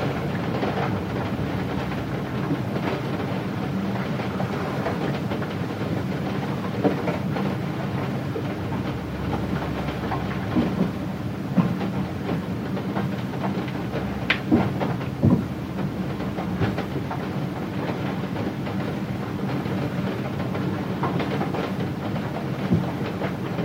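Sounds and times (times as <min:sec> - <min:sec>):
heavy rain hitting a window in a remote countryside house: 0:00.0 - 0:23.6.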